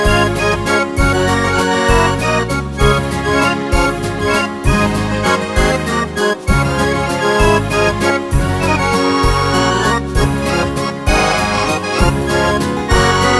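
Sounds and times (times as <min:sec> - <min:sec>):
dancing waltz music: 0:00.0 - 0:13.3.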